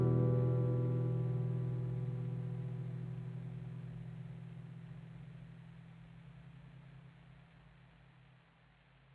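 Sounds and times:
ambient nylon guitar: 0:00.0 - 0:06.4.

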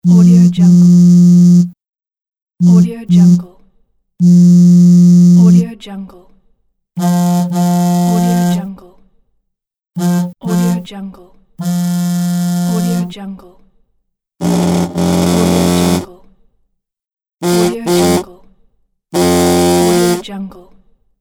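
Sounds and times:
cell phone vibrating: 0:00.0 - 0:01.8, 0:02.6 - 0:03.5, 0:04.2 - 0:05.6, 0:07.0 - 0:08.7, 0:10.0 - 0:10.9, 0:11.6 - 0:13.1, 0:14.4 - 0:16.1, 0:17.4 - 0:18.3, 0:19.2 - 0:20.3.

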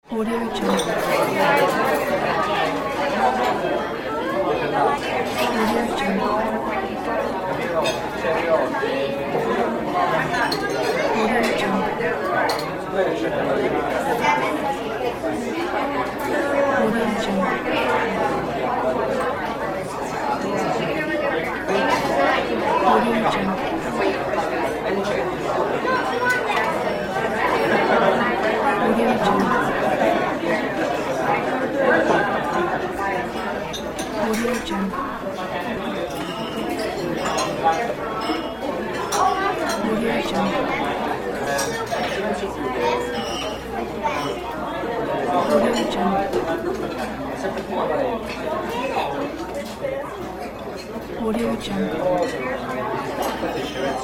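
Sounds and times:
restaurant ambience: 0:00.0 - 0:54.0.

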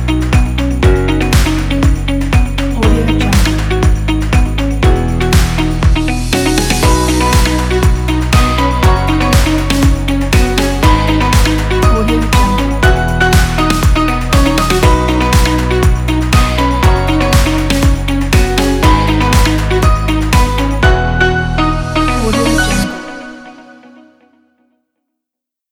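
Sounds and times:
upbeat corporate music kit: 0:00.0 - 0:24.2.

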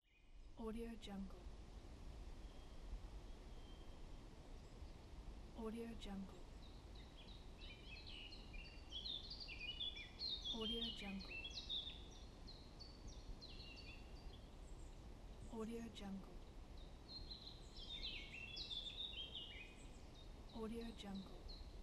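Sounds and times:
forest ambience: 0:00.0 - 0:21.8.

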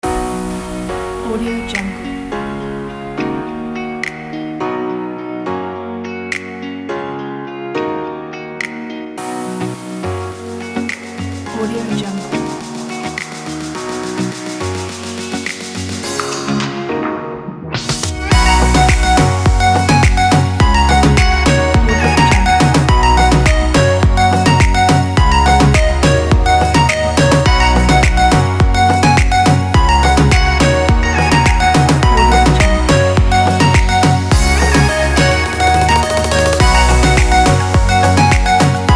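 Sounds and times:
summer party dance pop music: 0:00.0 - 0:04.7, 0:09.2 - 0:17.0, 0:17.8 - 0:38.9.

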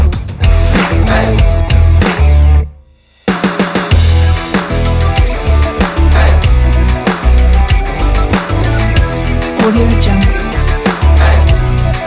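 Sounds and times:
electro rock beat: 0:00.0 - 0:02.7, 0:03.3 - 0:12.0.

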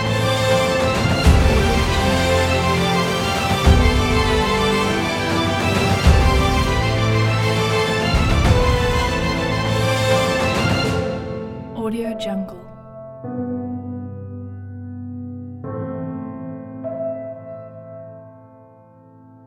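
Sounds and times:
epic inspiring adventure music: 0:00.0 - 0:12.8.

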